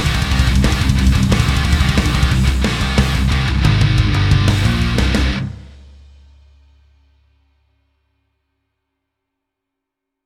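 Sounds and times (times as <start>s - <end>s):
mastered metal music: 0.0s - 6.2s.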